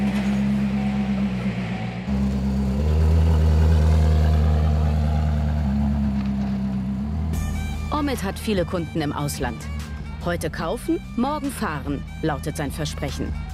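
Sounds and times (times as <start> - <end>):
Koenigsegg sports car engine rumbling while shifting gears: 0.0 - 13.5
speech: 8.1 - 13.5.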